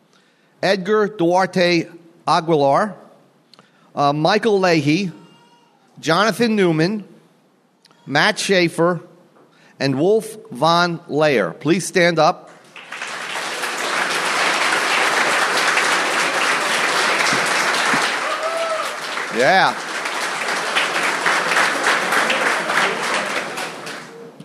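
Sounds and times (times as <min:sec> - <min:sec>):
speech: 0:00.6 - 0:03.0, 0:04.0 - 0:05.2, 0:06.0 - 0:07.1, 0:08.0 - 0:09.1, 0:09.8 - 0:12.6, 0:19.4 - 0:19.9
audience applause: 0:12.6 - 0:24.4.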